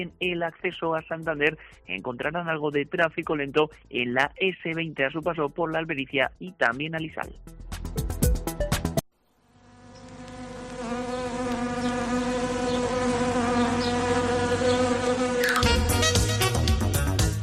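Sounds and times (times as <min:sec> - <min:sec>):
speech: 0:00.0 - 0:08.1
wasps buzzing: 0:09.4 - 0:17.3.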